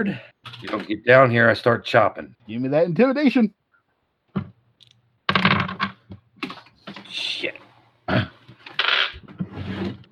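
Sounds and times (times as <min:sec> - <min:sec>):
speech: 0:00.0 - 0:03.6
objects falling off a table: 0:05.3 - 0:07.1.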